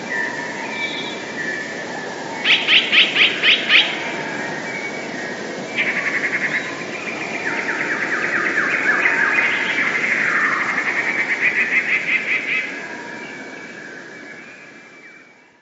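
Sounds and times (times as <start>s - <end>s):
constant background hiss: 0.0s - 15.6s
passerine bird singing: 2.4s - 12.8s.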